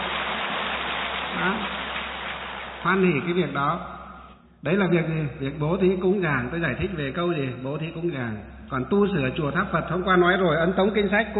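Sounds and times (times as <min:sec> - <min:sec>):
loud applause: 0:00.0 - 0:03.5
speech: 0:01.4 - 0:01.8, 0:02.8 - 0:04.0, 0:04.6 - 0:11.3.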